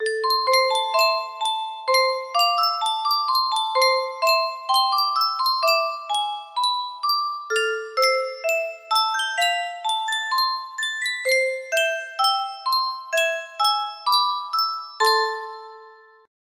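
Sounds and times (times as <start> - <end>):
Yunsheng music box melody: 0.0 - 16.3.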